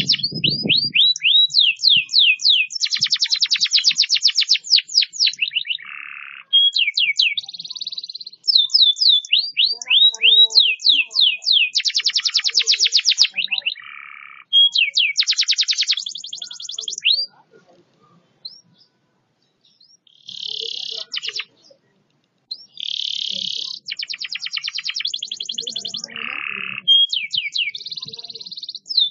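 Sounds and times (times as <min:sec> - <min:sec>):
canary buzzy song: 0:00.0 - 0:29.0.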